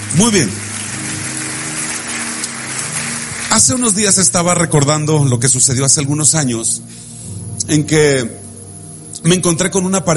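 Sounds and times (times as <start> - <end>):
audience applause: 0.0 - 4.3
speech: 0.2 - 0.7, 3.5 - 7.1, 7.7 - 8.4, 9.2 - 10.1.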